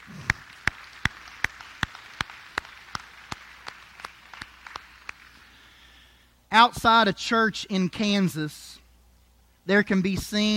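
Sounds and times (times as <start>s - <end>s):
audience applause: 0.0s - 5.4s
speech: 6.6s - 8.8s, 9.7s - 10.5s.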